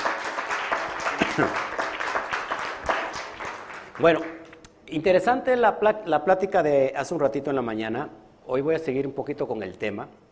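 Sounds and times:
loud audience applause: 0.0 - 4.6
speech: 1.4 - 1.7, 4.0 - 10.2.

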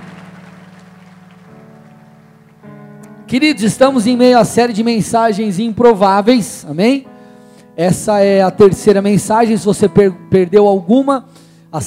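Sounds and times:
audience applause: 0.0 - 2.5
sustained keyboard chords: 0.0 - 11.8
speech: 3.3 - 7.1, 7.8 - 11.8.

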